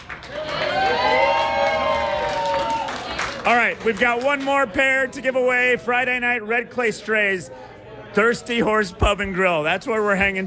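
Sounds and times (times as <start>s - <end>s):
crowd cheering and applauding: 0.0s - 4.5s
speech: 3.4s - 10.4s.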